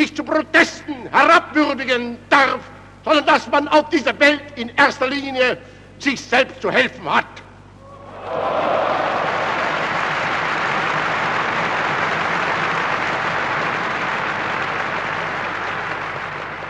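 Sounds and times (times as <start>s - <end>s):
speech: 0.1s - 7.4s, 8.2s - 9.1s
audience applause: 8.1s - 16.6s.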